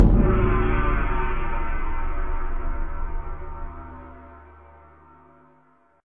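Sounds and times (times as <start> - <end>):
wasteland gong: 0.0 - 5.8.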